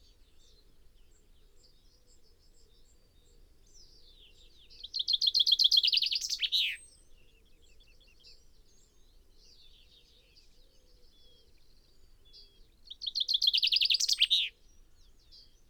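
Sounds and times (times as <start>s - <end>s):
common chaffinch Fringilla coelebs singing: 4.8s - 6.8s, 12.9s - 14.6s.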